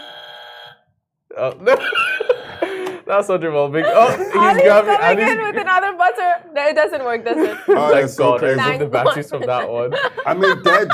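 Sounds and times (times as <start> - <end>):
buzzer going off: 0.0 - 0.9, 2.0 - 2.9
speech: 1.4 - 2.3, 3.1 - 10.9
laughter: 1.4 - 3.0, 3.8 - 5.9, 7.4 - 10.9.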